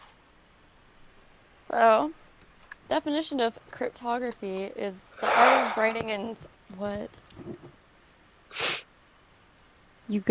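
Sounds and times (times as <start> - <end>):
speech: 1.7 - 2.2, 2.9 - 7.8, 10.1 - 10.2
sniffle: 8.5 - 8.9.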